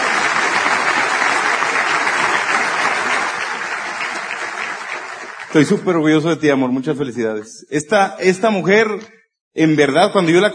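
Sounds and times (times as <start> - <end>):
audience applause: 0.0 - 6.2
speech: 5.6 - 10.5.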